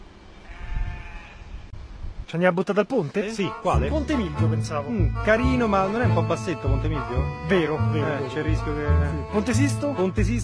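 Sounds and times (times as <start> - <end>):
sheep bleating: 0.4 - 1.7
speech: 2.3 - 10.4.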